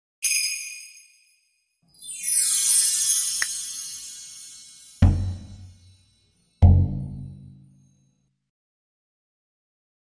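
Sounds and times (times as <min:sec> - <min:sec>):
percussion: 0:00.2 - 0:07.9.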